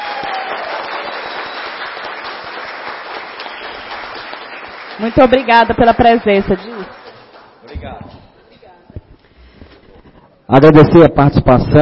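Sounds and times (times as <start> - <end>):
audience applause: 0.0 - 7.6
speech: 5.0 - 7.0, 10.5 - 11.8.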